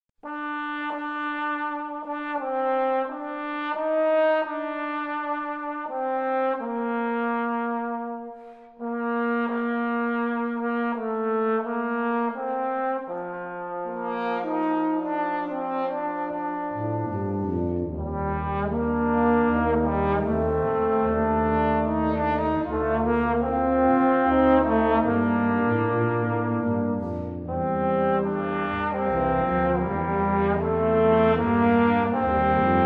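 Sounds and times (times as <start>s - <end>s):
brass ensemble: 0.2s - 32.8s.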